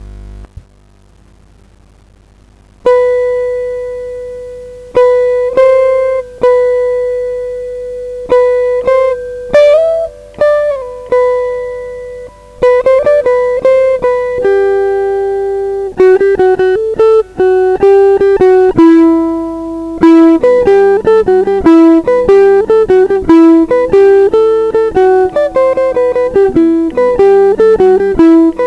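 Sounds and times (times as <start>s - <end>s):
musical riff: 2.8s - 28.6s.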